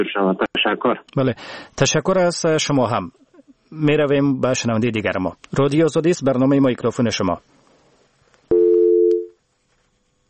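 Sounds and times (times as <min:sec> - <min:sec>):
speech: 0:00.0 - 0:07.6
telephone busy tone after a dropped call: 0:08.5 - 0:09.4.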